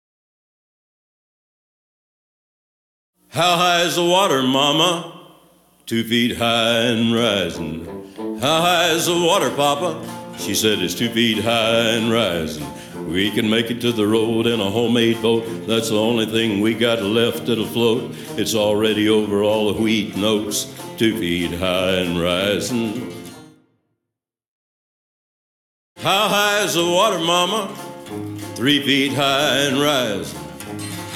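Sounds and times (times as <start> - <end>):
person singing: 3.3 - 5.3, 5.9 - 23.4, 26.0 - 31.1.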